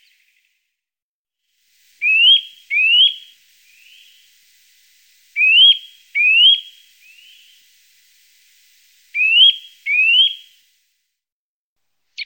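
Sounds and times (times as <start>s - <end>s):
Eurasian nuthatch whistling and trilling: 2.1s - 3.3s, 5.4s - 7.5s, 9.2s - 10.5s.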